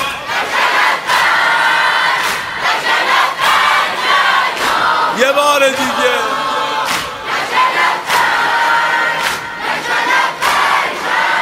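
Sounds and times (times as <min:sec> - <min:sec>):
large crowd of mourners chanting responses in unison: 0:00.0 - 0:11.4
speech: 0:05.3 - 0:06.3.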